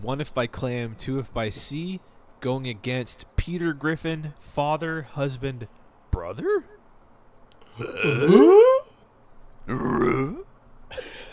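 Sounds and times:
speech: 0:00.0 - 0:06.8, 0:07.8 - 0:08.7, 0:09.7 - 0:10.4
person imitating a growl: 0:07.7 - 0:08.9, 0:09.7 - 0:10.5.

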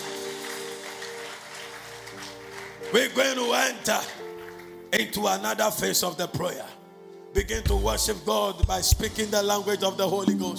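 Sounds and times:
audience clapping: 0:00.0 - 0:04.9
speech: 0:02.9 - 0:04.2, 0:04.9 - 0:10.5.

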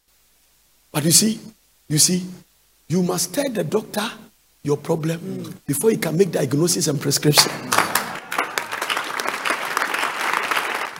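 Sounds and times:
speech: 0:01.0 - 0:07.8
audience clapping: 0:07.4 - 0:10.9.

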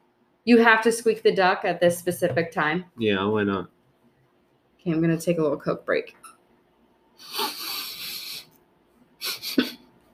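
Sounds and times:
speech: 0:00.4 - 0:03.8, 0:04.8 - 0:06.3, 0:07.2 - 0:07.6
sniffing: 0:07.2 - 0:08.5, 0:09.2 - 0:09.8.

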